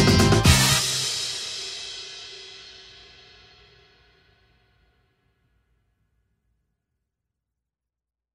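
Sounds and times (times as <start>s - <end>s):
energetic rock guitar: 0.0s - 1.2s.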